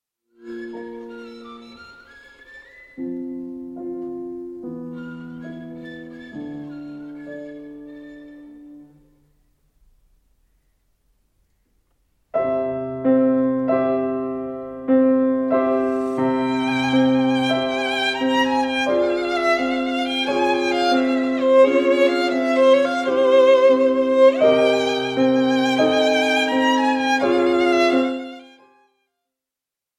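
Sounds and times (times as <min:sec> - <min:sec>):
piano playing folk dances: 0:00.3 - 0:11.4, 0:12.1 - 0:29.1
violin playing folk dances: 0:00.4 - 0:09.2, 0:15.6 - 0:29.0.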